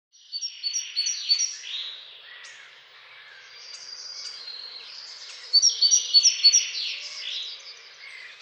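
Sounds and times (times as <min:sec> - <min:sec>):
great tit calls: 0:00.2 - 0:08.3.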